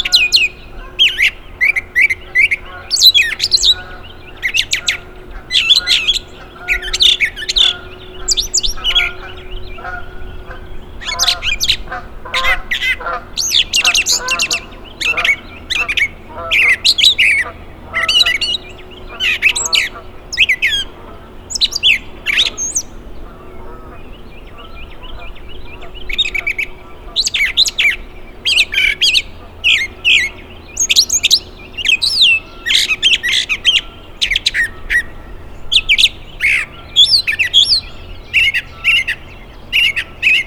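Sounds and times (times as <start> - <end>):
brown thrasher song: 0.0 - 40.4.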